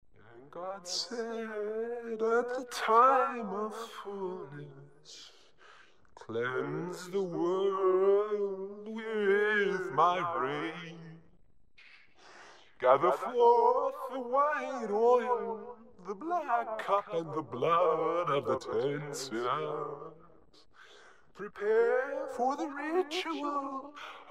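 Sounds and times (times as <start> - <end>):
ghostly singing voice: 0.2 - 24.2.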